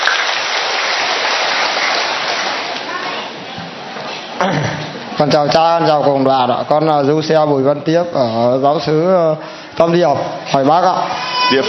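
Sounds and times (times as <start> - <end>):
loud applause: 0.0 - 3.2
speech: 5.2 - 11.6.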